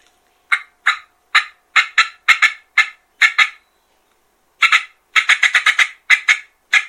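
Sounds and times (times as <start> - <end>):
turkey call imitating cutting clucks: 0.5 - 3.6, 4.6 - 6.8.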